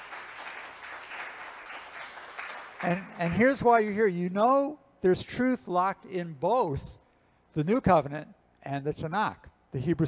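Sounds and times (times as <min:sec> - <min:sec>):
audience applause: 0:00.0 - 0:03.5
speech: 0:02.8 - 0:07.0, 0:07.6 - 0:10.0.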